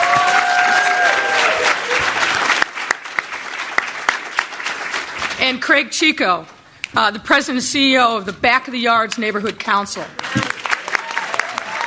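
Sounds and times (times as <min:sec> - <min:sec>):
audience applause at a City Club of Chicago panel: 0:00.0 - 0:05.4, 0:10.2 - 0:11.8
speech: 0:05.5 - 0:10.5.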